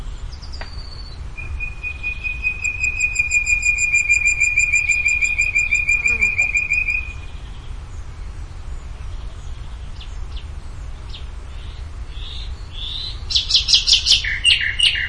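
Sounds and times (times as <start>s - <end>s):
songbird singing: 0.0s - 15.0s.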